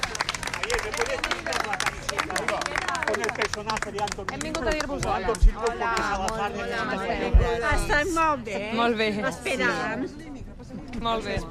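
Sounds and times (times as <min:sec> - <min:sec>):
waiting crowd applauding: 0:00.0 - 0:07.0
speech: 0:00.9 - 0:10.4, 0:11.0 - 0:11.5.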